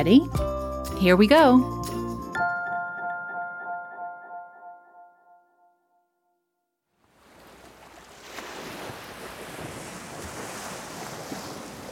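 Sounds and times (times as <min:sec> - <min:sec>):
speech: 0:00.0 - 0:01.8
ocean waves breaking on a beach: 0:06.9 - 0:11.8.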